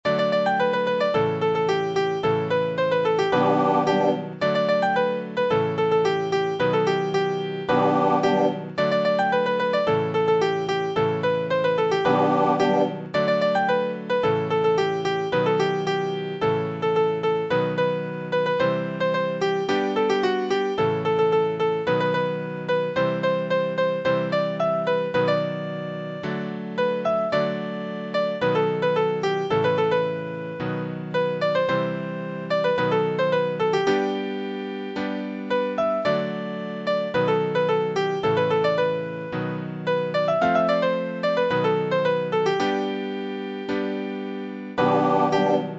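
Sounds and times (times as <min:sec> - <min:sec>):
piano: 0:00.0 - 0:45.7.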